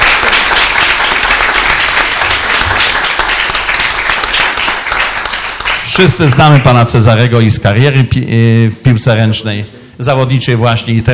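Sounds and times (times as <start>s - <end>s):
audience applause: 0.0s - 6.7s
speech: 6.0s - 11.1s.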